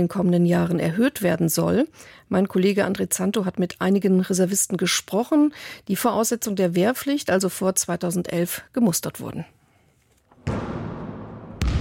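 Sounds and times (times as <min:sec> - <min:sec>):
speech: 0:00.0 - 0:09.6
basketball bouncing as reservists play at Julius-Leber-Kaserne in Berlin: 0:10.4 - 0:11.7.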